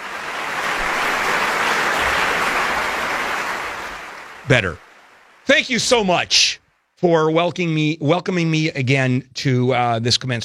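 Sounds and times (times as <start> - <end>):
applause sound effect: 0.0 - 6.3
speech: 4.5 - 4.8, 5.5 - 10.4.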